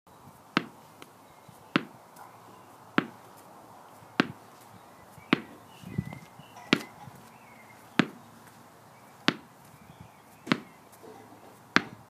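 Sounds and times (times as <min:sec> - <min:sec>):
ball bouncing: 0:00.6 - 0:00.8, 0:01.8 - 0:02.0, 0:03.0 - 0:03.2, 0:04.2 - 0:04.4, 0:05.3 - 0:07.3, 0:08.0 - 0:08.2, 0:09.3 - 0:09.5, 0:10.4 - 0:10.7, 0:11.8 - 0:12.0.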